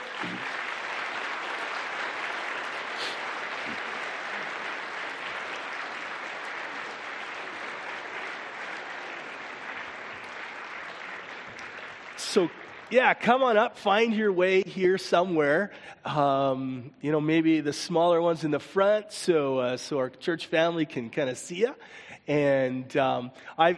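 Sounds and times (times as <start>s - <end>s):
church congregation applauding in welcome: 0.0s - 15.6s
speech: 12.4s - 23.7s.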